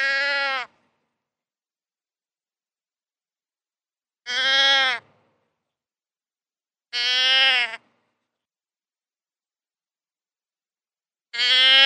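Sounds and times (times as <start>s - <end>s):
deer bleating: 0.0s - 0.8s, 4.2s - 5.1s, 6.9s - 7.9s, 11.3s - 11.8s.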